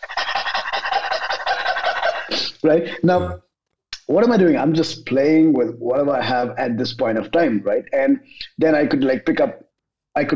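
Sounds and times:
person imitating dog panting: 0.0 - 2.4
speech: 2.3 - 3.5, 4.1 - 9.6, 10.2 - 10.3.

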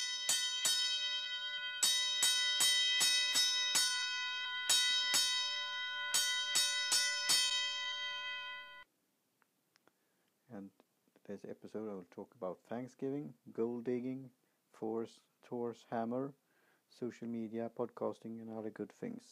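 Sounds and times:
fire alarm bell ringing: 0.0 - 8.8
speech: 11.3 - 19.3.

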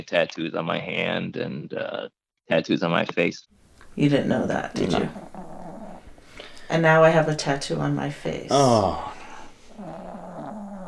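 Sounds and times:
speech: 0.0 - 5.3, 6.7 - 9.2
dog groaning: 3.9 - 6.4, 8.4 - 10.8.

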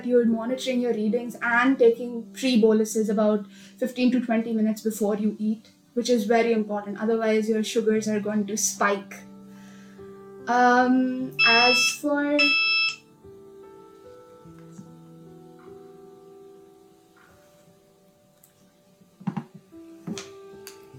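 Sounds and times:
speech: 0.0 - 9.3, 10.5 - 12.6
insulin pump alert beeps: 11.4 - 13.0
faint knocks: 19.2 - 20.3.

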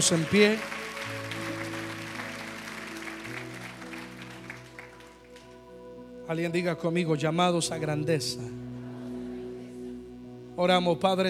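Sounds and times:
speech: 0.0 - 0.8, 6.3 - 8.7, 10.6 - 11.2
audience applause: 0.0 - 5.5
sustained organ or keyboard chords: 0.0 - 11.2.

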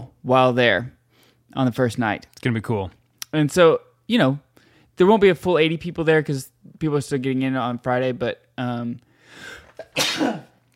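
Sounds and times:
speech: 0.2 - 4.4, 5.0 - 10.5
drawn-in breath: 9.1 - 9.8
man sneezing: 9.4 - 10.6.

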